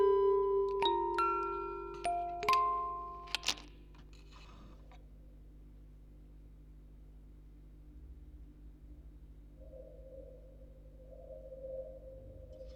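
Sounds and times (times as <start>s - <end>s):
quartet of music boxes playing on tape: 0.0s - 3.8s.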